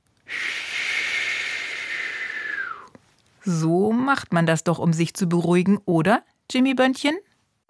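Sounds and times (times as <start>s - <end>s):
deep breath taken, held and slowly let out: 0.3s - 2.9s
speech: 3.4s - 7.3s.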